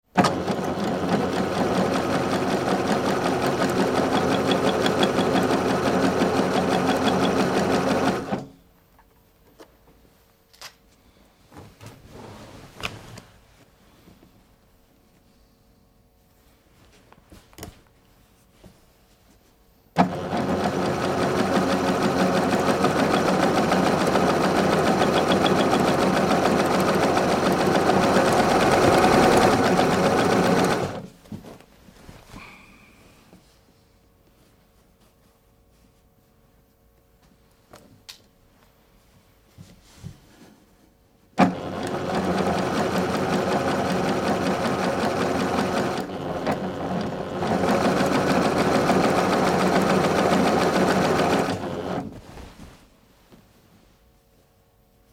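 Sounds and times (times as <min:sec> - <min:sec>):
electric sewing machine doing various sewing moves: 0:00.2 - 0:08.5, 0:20.0 - 0:31.1, 0:41.4 - 0:52.1.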